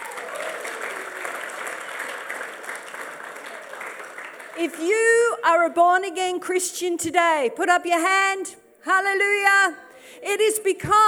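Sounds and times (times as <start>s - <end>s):
audience applause: 0.0s - 4.8s
speech: 4.6s - 11.0s.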